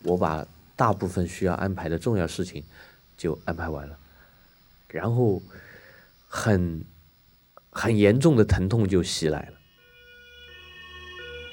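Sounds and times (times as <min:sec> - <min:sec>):
speech: 0:00.1 - 0:04.0, 0:04.9 - 0:05.7, 0:06.3 - 0:06.9, 0:07.8 - 0:09.6
ambulance siren: 0:09.4 - 0:11.5.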